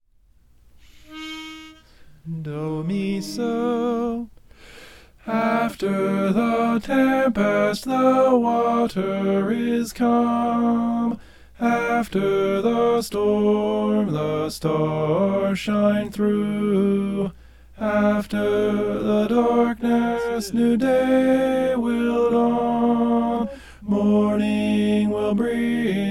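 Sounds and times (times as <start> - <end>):
tenor singing: 1.0 - 4.4, 5.2 - 26.0.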